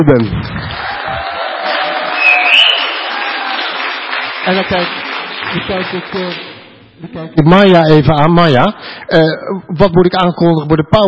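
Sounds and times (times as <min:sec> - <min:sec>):
speech: 0:00.0 - 0:00.9, 0:04.5 - 0:11.0
audience applause: 0:00.5 - 0:06.7.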